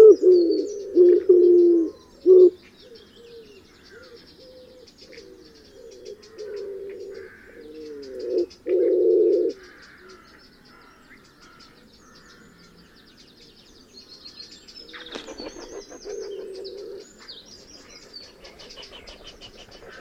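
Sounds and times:
wood pigeon cooing: 0.0 - 2.6, 3.2 - 9.6, 15.2 - 17.1.

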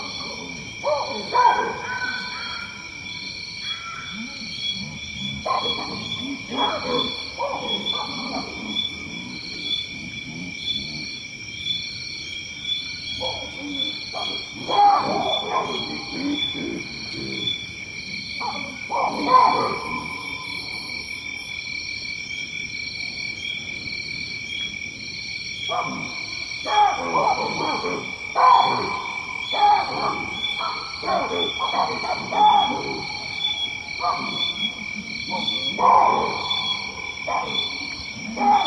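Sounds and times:
monkeys in Tanzania: 0.0 - 9.7, 13.2 - 17.8, 18.4 - 21.6, 25.7 - 38.6
lion in Tanzania: 0.0 - 22.2, 22.8 - 38.6.

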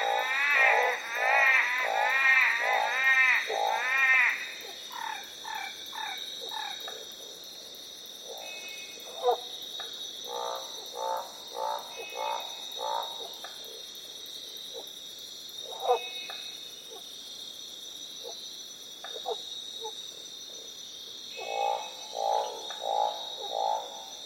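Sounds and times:
Northern barred frog croaks: 0.0 - 7.4, 10.2 - 13.8, 15.6 - 17.0, 19.0 - 20.0, 21.3 - 24.2.

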